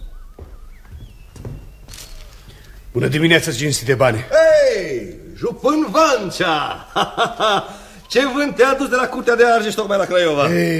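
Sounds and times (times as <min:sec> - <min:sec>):
heavy footsteps on stone flagstones: 0:00.0 - 0:03.0
speech: 0:02.9 - 0:10.7
laughter: 0:04.4 - 0:10.7.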